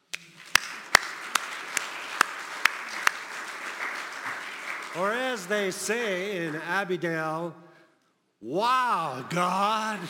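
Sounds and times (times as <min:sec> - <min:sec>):
audience hand clapping: 0:00.0 - 0:07.0
speech: 0:05.0 - 0:07.6, 0:08.4 - 0:10.0.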